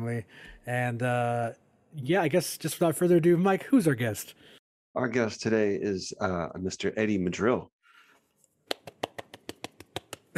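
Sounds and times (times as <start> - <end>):
speech: 0.0 - 7.8
one person clapping hands as applause: 8.7 - 10.3.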